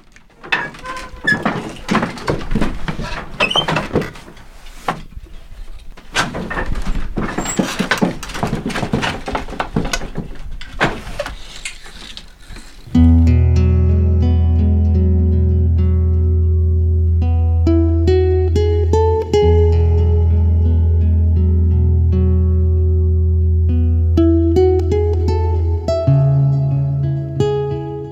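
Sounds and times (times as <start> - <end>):
wooden weaving loom clattering and knocking: 0.0 - 12.9
instrumental music: 12.9 - 28.1.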